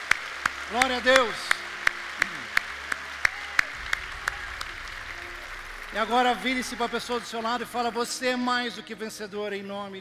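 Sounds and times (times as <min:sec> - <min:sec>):
audience applause: 0:00.0 - 0:08.7
speech: 0:00.7 - 0:01.6, 0:06.0 - 0:09.9.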